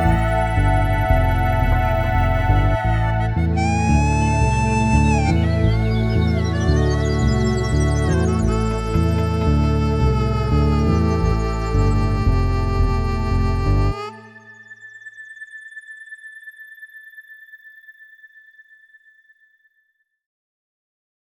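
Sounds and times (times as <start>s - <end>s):
ctk-6200 keyboard sequence: 0.0s - 14.7s.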